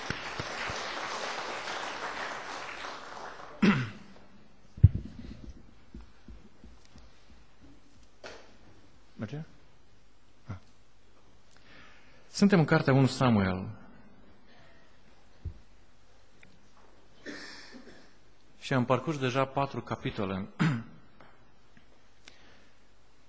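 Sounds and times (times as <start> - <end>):
audience applause: 0.0 - 3.9
speech: 12.4 - 13.8, 18.7 - 20.7.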